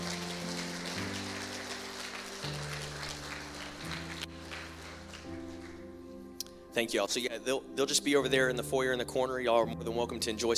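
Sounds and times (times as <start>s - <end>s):
crowd applauding: 0.0s - 6.0s
speech: 6.8s - 10.5s.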